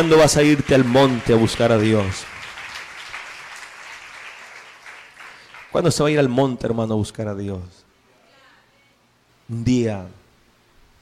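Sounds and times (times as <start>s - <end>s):
speech: 0.0s - 2.3s, 5.7s - 7.8s, 9.5s - 10.2s
congregation clapping hands in praise at a church service: 0.0s - 6.6s.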